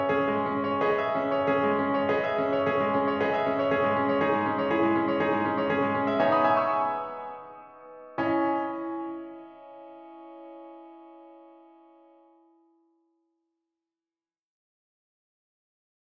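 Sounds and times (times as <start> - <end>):
piano prelude in C minor: 0.0 - 12.8.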